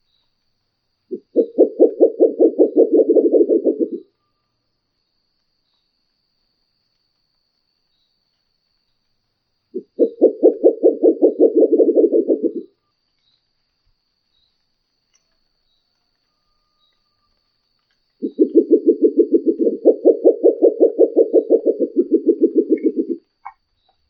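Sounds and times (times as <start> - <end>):
Murucutu owl calling: 1.1 - 4.0, 9.8 - 12.7, 18.2 - 23.6.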